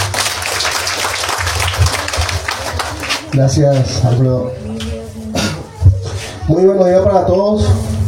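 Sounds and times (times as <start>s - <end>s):
audience applause: 0.0s - 3.6s
speech: 3.4s - 4.6s, 6.5s - 7.9s.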